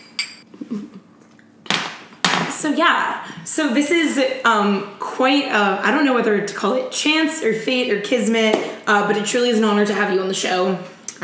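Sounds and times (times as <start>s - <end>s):
wine glasses clinking in a toast: 0.0s - 0.4s
speech: 2.6s - 11.2s.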